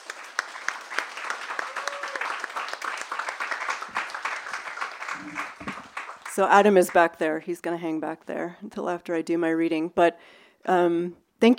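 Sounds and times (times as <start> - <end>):
audience applause welcoming two speakers at an evening reading event: 0.0 - 7.0
speech: 6.4 - 11.5.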